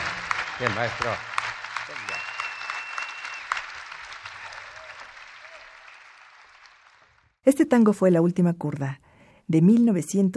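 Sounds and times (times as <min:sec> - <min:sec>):
audience applause: 0:00.0 - 0:07.4
speech: 0:00.6 - 0:01.3, 0:07.4 - 0:10.3.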